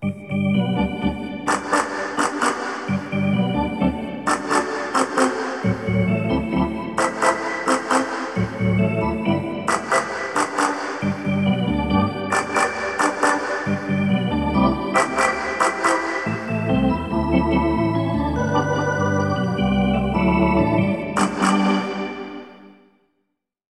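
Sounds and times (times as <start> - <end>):
hockey arena organ: 0.0 - 22.5.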